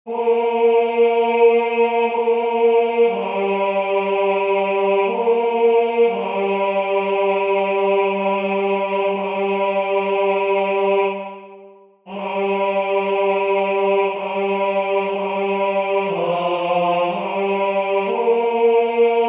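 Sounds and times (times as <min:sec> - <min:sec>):
tenor singing chorale: 0:00.1 - 0:19.2.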